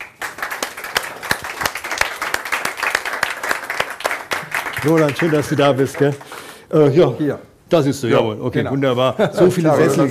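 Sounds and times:
rhythmic sharp claps: 0.0s - 6.6s
roaring applause: 0.0s - 6.6s
speech: 4.8s - 10.0s.

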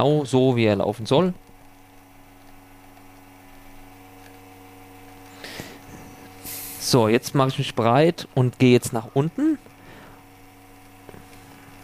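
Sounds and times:
speech: 0.0s - 1.4s, 6.9s - 9.7s
ECM espresso machine pump hum pulling a shot: 0.0s - 11.8s
espresso machine hissing noise: 5.9s - 7.0s.

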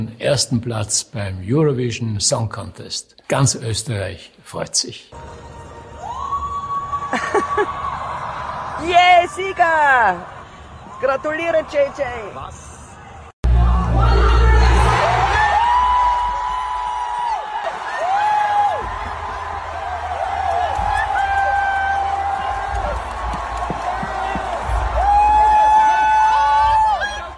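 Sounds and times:
speech: 0.0s - 5.7s, 7.1s - 8.0s, 8.8s - 10.4s, 11.0s - 12.7s
large crowd cheering and shouting: 5.2s - 27.3s.

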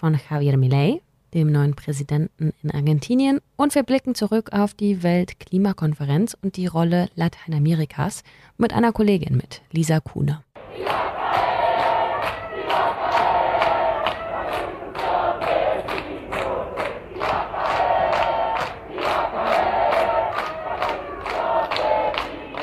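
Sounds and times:
speech: 0.0s - 11.1s
protest crowd chanting in the streets of Santiago, Chile: 10.6s - 22.6s
rhythmic claps or thumps keeping time: 10.6s - 22.6s.

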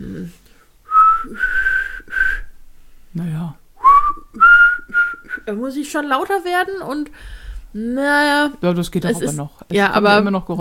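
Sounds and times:
speech: 0.2s - 0.4s, 1.2s - 1.6s, 3.1s - 3.6s, 5.5s - 10.5s
person whistling weakly: 0.9s - 2.6s, 3.8s - 5.5s.

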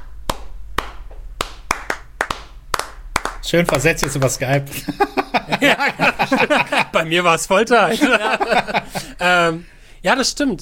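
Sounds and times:
hand clapping a three-two clave rhythm: 0.0s - 4.7s
speech: 3.4s - 10.6s
laughter: 4.7s - 9.6s.

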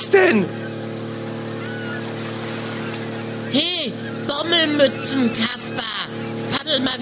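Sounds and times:
motorboat with 200 hp outboard motor racing on the Alster: 0.0s - 7.0s
speech: 0.1s - 0.6s, 3.5s - 7.0s
laughter: 0.2s - 7.0s
rushing water: 2.0s - 3.0s.

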